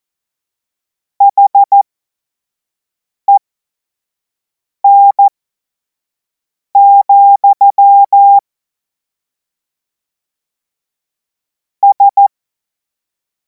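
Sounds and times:
Morse code course tones: 0:01.2 - 0:01.8, 0:04.8 - 0:05.3, 0:06.8 - 0:08.4, 0:11.8 - 0:12.3.

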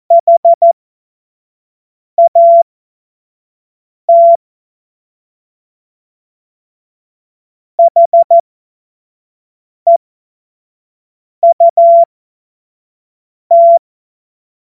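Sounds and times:
Morse code course tones: 0:00.1 - 0:00.7, 0:02.2 - 0:02.6, 0:04.1 - 0:04.4, 0:07.8 - 0:08.4, 0:11.4 - 0:12.0, 0:13.5 - 0:13.8.

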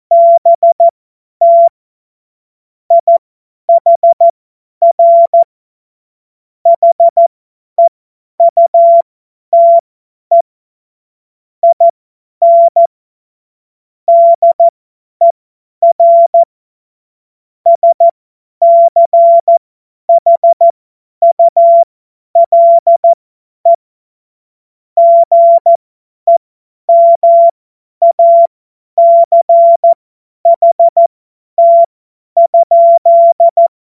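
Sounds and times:
CW Morse code beeps: 0:00.1 - 0:01.7, 0:02.9 - 0:05.5, 0:06.7 - 0:10.4, 0:11.6 - 0:12.9, 0:14.1 - 0:14.7, 0:15.8 - 0:16.5, 0:17.7 - 0:23.8, 0:25.0 - 0:33.7.

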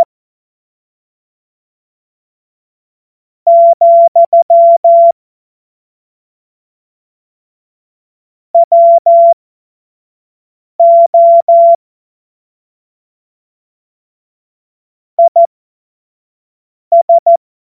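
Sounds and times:
Morse code tones: 0:03.5 - 0:05.1, 0:08.6 - 0:09.4, 0:10.8 - 0:11.8, 0:16.9 - 0:17.4.

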